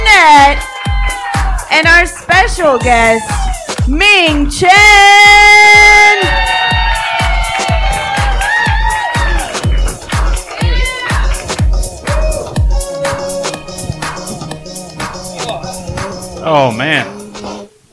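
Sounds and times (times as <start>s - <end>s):
shrill whoops and cheers: 0.5s - 1.7s, 2.6s - 3.8s, 4.9s - 9.7s, 10.5s - 12.6s
live crowd clapping: 0.5s - 2.3s, 6.1s - 12.6s
speech: 1.8s - 6.4s, 16.4s - 17.2s.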